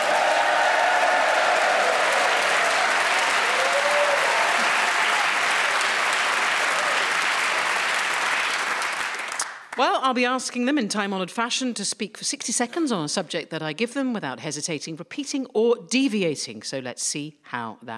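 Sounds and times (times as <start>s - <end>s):
studio audience applause: 0.0s - 9.8s
speech: 9.8s - 17.9s.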